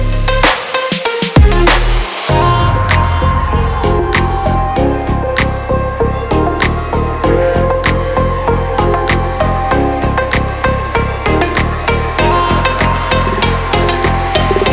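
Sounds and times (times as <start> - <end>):
trap fashion bass: 0.0 - 0.6, 1.4 - 14.7.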